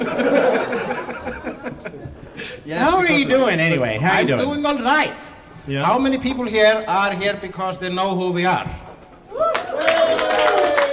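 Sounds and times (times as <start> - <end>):
laughter: 0.0 - 3.5
speech: 2.7 - 8.8
person cheering: 9.3 - 10.9
audience applause: 9.4 - 10.9.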